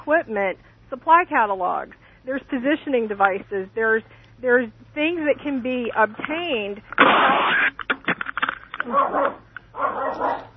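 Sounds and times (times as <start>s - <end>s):
speech: 0.0s - 7.7s, 8.8s - 10.5s
dog named David barking: 8.8s - 10.5s.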